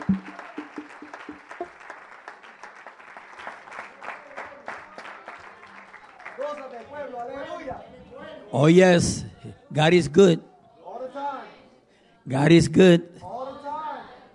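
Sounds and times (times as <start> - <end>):
audience applause: 0.0 - 7.0
speech: 6.8 - 10.5, 12.3 - 13.2.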